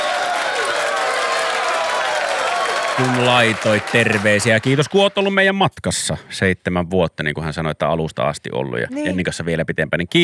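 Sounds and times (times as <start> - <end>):
audience applause: 0.0 - 5.4
speech: 3.0 - 10.2.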